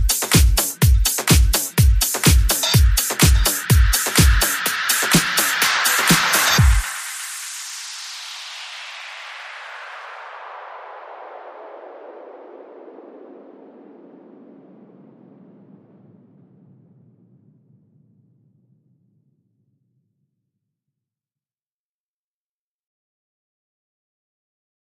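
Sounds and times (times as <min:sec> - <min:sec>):
beat: 0:00.0 - 0:07.7.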